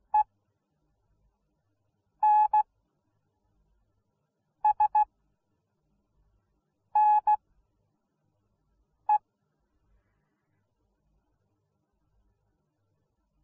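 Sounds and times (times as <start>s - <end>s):
morse code beeps: 2.2s - 2.6s, 4.7s - 5.0s, 7.0s - 7.4s.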